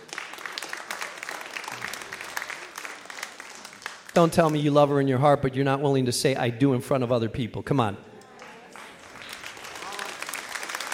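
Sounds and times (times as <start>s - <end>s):
women clapping in church audience: 0.0s - 4.7s, 8.2s - 10.9s
speech: 4.2s - 8.1s.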